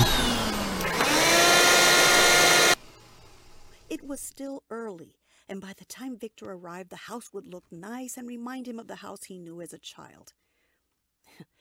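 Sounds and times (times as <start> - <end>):
vacuum cleaner running: 0.0 - 3.9
speech: 4.1 - 10.4.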